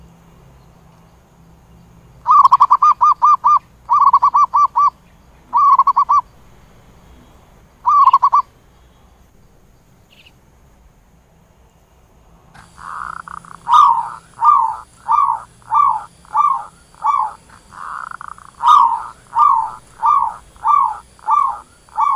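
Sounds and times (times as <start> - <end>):
zebra dove cooing: 2.3 - 6.3, 7.8 - 8.5, 12.6 - 22.1.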